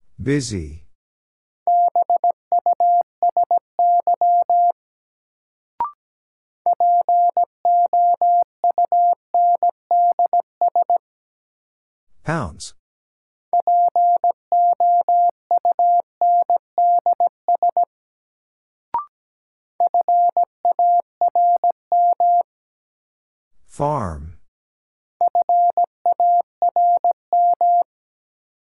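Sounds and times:
person speaking the word: 0.2s - 0.8s, 12.2s - 12.8s, 23.7s - 24.4s
Morse code beeps at 17 wpm: 1.7s - 4.8s, 6.7s - 10.9s, 13.6s - 17.9s, 19.8s - 22.4s, 25.3s - 27.9s.

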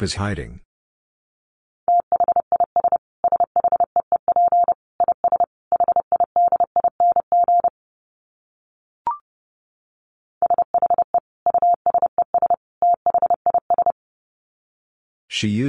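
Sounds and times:
speech: 0.0s - 0.7s, 15.4s - 15.6s
rapid Morse code beeps at about 30 words per minute: 1.9s - 7.7s, 10.4s - 14.0s.

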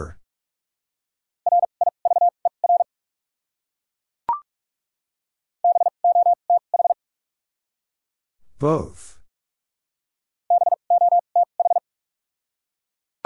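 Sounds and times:
speech: 0.0s - 0.2s, 8.6s - 9.1s
rapid Morse code tones at about 45 words per minute: 1.5s - 2.9s, 5.6s - 7.0s, 10.5s - 11.8s.

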